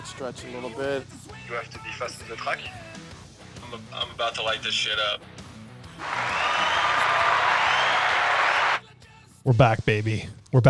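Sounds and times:
speech: 0.0 - 5.3, 6.0 - 6.6, 9.4 - 10.6
crowd applause sound effect: 6.0 - 8.8.

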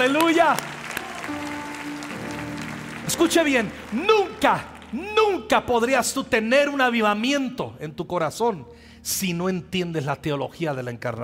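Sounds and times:
speech: 0.0 - 2.0, 3.1 - 11.2
audience clapping: 0.0 - 5.9.

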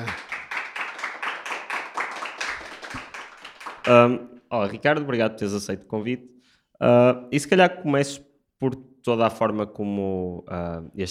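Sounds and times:
audience round of applause: 0.0 - 4.1
speech: 3.9 - 11.0.

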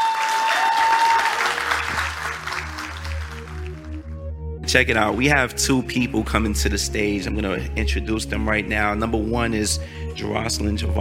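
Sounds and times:
audience applause: 0.0 - 4.0
speech: 4.7 - 10.9.

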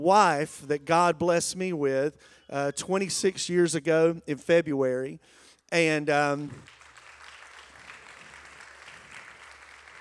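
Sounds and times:
speech: 0.0 - 6.8
faint church congregation applause at a Sunday morning service: 6.4 - 9.9.

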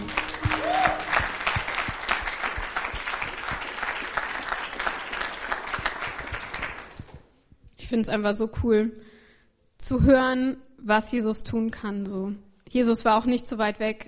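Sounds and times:
audience applause: 0.0 - 7.0
speech: 7.9 - 9.0, 9.9 - 14.0.

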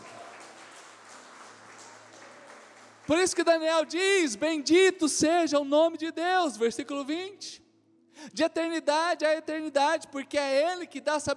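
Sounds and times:
loud audience applause: 0.0 - 3.4
speech: 3.1 - 7.6, 8.2 - 11.3.

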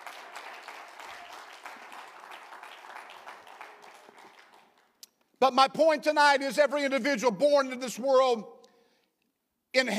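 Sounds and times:
audience clapping hands: 0.0 - 5.3
speech: 5.4 - 8.6, 9.8 - 9.9.

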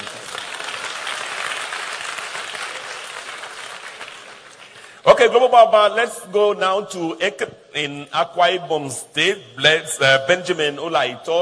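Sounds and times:
audience applause: 0.0 - 5.0
speech: 5.1 - 11.4.

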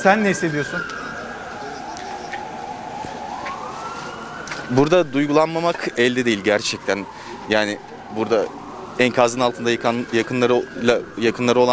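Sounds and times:
speech: 0.0 - 1.0, 4.7 - 11.7
ambulance siren: 0.0 - 11.7.

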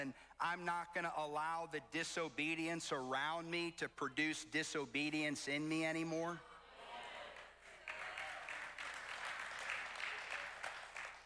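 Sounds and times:
speech: 0.0 - 6.5
sparse audience clapping: 7.2 - 11.2.

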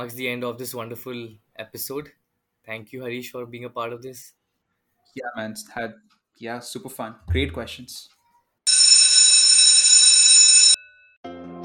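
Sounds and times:
speech: 0.0 - 4.4, 5.1 - 8.2
college bell ringing: 8.7 - 11.2.

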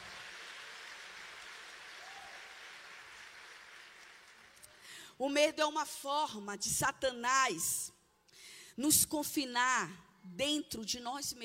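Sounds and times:
audience applause: 0.0 - 4.7
speech: 5.2 - 8.0, 8.8 - 11.4.

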